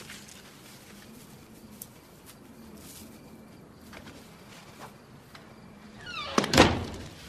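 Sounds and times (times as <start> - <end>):
door being barred shut: 6.0 - 7.2.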